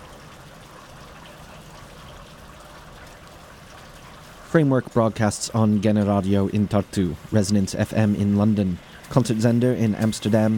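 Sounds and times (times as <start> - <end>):
summer rain in Southeast Estonia: 0.0 - 8.0
speech: 4.5 - 10.5.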